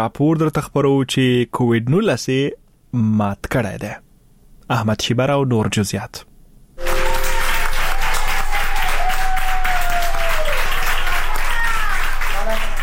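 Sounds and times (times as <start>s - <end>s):
speech: 0.0s - 4.0s, 4.7s - 6.3s
applause from doctors and nurses in Madrid for a recovered COVID-19 patient: 6.8s - 12.8s.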